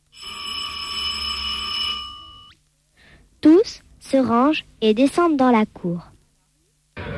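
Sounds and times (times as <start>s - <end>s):
school bell ringing: 0.2s - 2.6s
speech: 3.4s - 6.1s.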